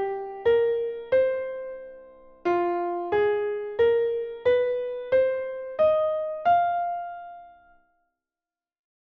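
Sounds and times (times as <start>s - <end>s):
piano blues scale improvisation: 0.0s - 7.6s.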